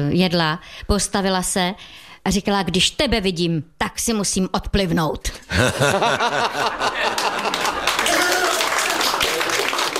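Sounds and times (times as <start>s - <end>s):
speech: 0.0s - 7.6s
laughter: 5.5s - 8.1s
audience clapping: 6.5s - 9.9s.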